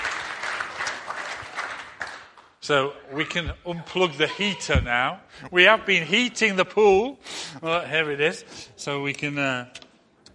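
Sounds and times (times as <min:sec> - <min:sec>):
applause from a church congregation at a service: 0:00.0 - 0:02.6
speech: 0:02.7 - 0:09.8.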